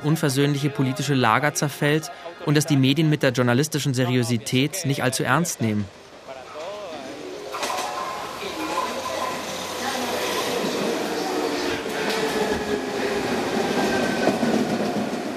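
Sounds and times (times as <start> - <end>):
speech: 0.0 - 6.1
Caracas metro train riding: 0.0 - 15.3.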